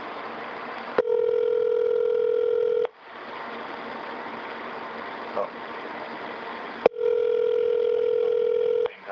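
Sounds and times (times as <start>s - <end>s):
soft telephone line hiss: 1.0s - 2.9s, 6.8s - 9.0s.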